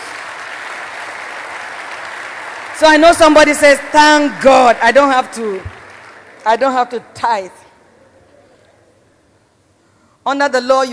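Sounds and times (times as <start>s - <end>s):
congregation clapping in thanks during a sermon: 0.0s - 7.1s
speech: 2.8s - 5.8s, 6.4s - 7.6s, 10.3s - 10.9s.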